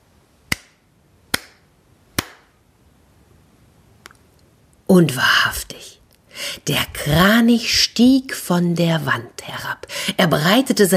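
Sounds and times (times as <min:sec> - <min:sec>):
hand claps: 0:00.5 - 0:01.6, 0:02.2 - 0:02.5
speech: 0:04.9 - 0:05.6, 0:06.6 - 0:10.9.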